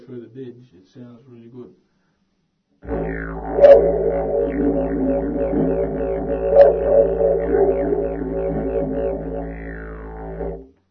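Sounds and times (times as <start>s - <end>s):
didgeridoo lesson: 2.8s - 10.7s.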